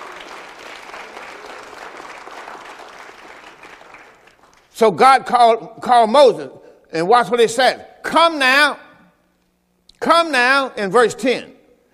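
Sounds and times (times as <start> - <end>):
audience clapping hands: 0.0 - 4.7
speech: 4.8 - 8.8, 10.0 - 11.6.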